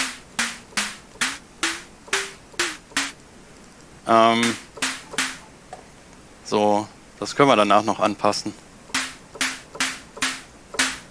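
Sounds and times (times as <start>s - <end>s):
synthesized snare drum from sine wave: 0.0s - 3.2s, 4.4s - 5.5s, 9.0s - 11.0s
speech: 4.1s - 4.6s, 6.5s - 8.6s.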